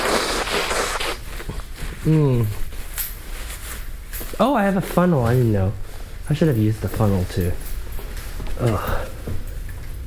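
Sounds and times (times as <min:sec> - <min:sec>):
person blowing nose: 0:00.0 - 0:02.5
shuffling: 0:00.0 - 0:10.0
speech: 0:02.0 - 0:02.6, 0:04.4 - 0:07.7, 0:08.6 - 0:09.4.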